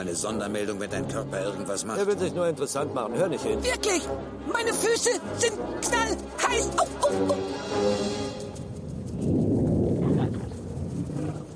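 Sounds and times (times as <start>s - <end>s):
speech: 0.0s - 8.3s
laughter: 6.5s - 7.7s
rumble like thunder from underground: 8.3s - 11.5s.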